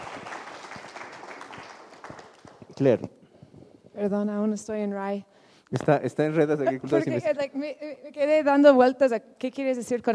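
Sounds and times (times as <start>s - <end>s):
faint applause for a group at a meeting: 0.0s - 2.8s
speech: 2.8s - 3.2s, 4.0s - 10.1s.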